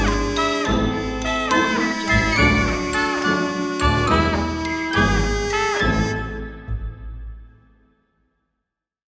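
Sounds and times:
funny kids sounds: 0:00.0 - 0:06.1.

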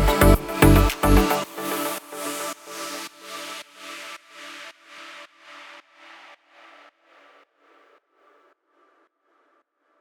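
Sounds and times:
inspiring background pop music: 0:00.0 - 0:04.1.

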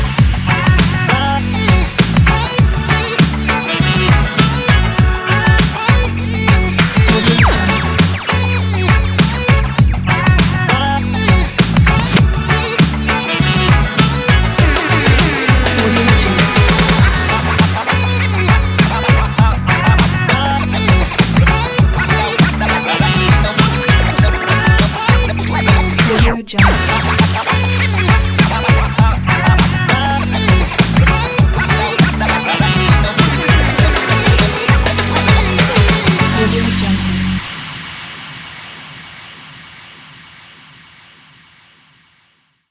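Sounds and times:
hip hop reggae music: 0:00.0 - 0:38.7.

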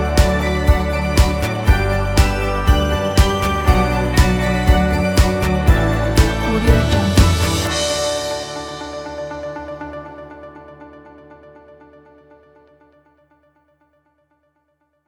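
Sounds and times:
happy corporate music: 0:00.0 - 0:11.8.

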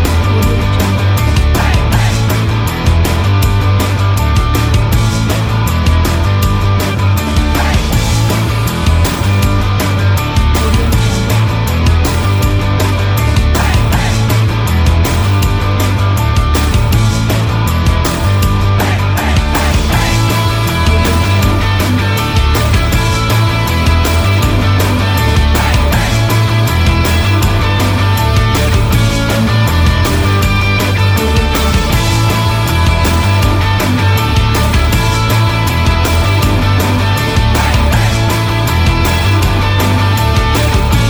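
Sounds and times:
positive driving rock music: 0:00.0 - 0:41.0.

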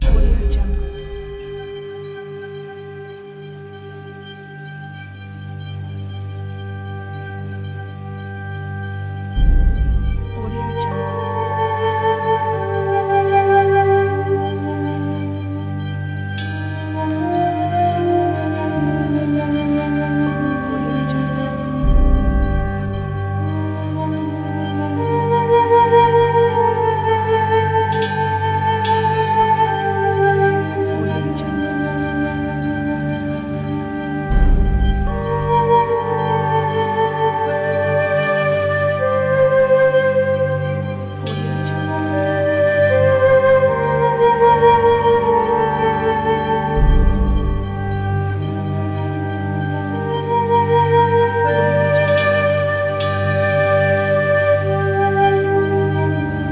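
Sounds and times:
Japanese ethnic trailer ident music: 0:00.0 - 0:56.5.

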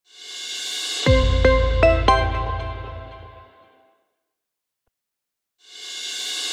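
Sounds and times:
plucked tech logo sting: 0:01.1 - 0:03.4.

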